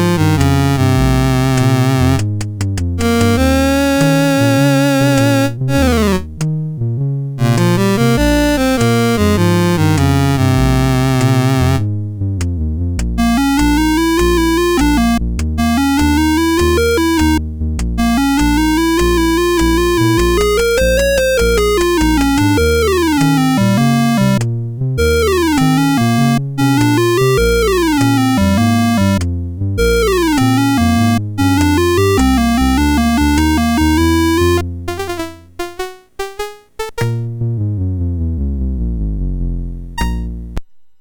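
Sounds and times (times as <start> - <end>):
chiptune music on MOS6581R4 sound chip: 0.0 - 40.6.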